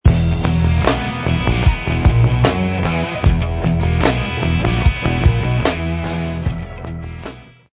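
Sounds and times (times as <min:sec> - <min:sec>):
Lydian mode funk music: 0:00.0 - 0:07.7.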